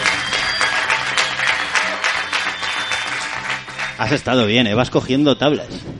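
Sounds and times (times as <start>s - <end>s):
studio audience applause: 0.0s - 4.6s
speech: 4.0s - 5.9s.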